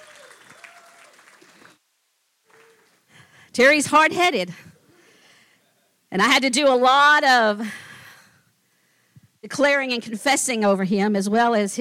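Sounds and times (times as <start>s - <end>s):
audience clapping: 0.0s - 1.8s, 2.4s - 3.1s
speech: 3.6s - 4.7s, 6.1s - 7.8s, 9.4s - 11.7s.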